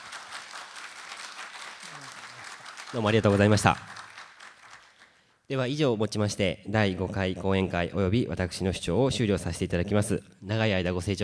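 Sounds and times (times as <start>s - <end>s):
lecture audience applause: 0.0s - 5.2s
speech: 2.9s - 4.0s, 5.5s - 11.2s.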